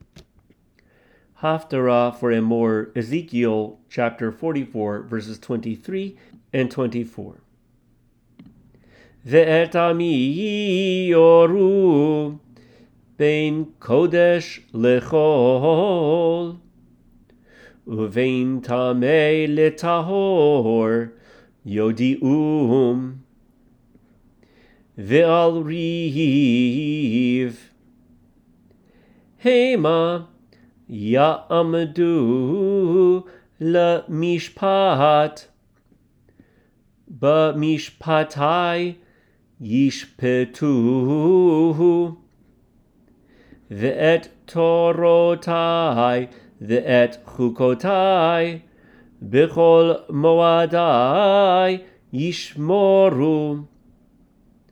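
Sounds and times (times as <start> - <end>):
person chanting the haftarah: 1.4 - 7.5, 9.2 - 12.4, 13.2 - 16.6, 17.9 - 23.3, 25.0 - 27.7, 29.4 - 35.5, 37.1 - 39.0, 39.6 - 42.2, 43.7 - 53.7.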